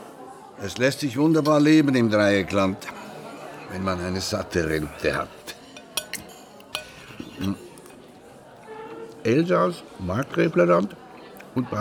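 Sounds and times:
speech: 0.6 - 3.0, 3.7 - 5.5, 7.4 - 7.6, 9.2 - 11.0, 11.6 - 11.8
plates of cold roast meat set down, crockery and glass clinks: 4.7 - 8.1.

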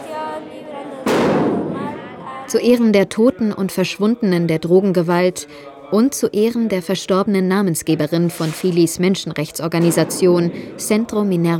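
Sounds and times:
fireworks going off: 1.0 - 2.8, 9.8 - 11.5
speech: 2.5 - 11.5.

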